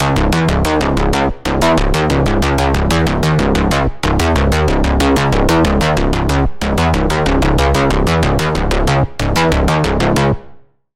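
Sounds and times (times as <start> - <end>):
Sylenth1 synth bass: 0.0 - 10.6.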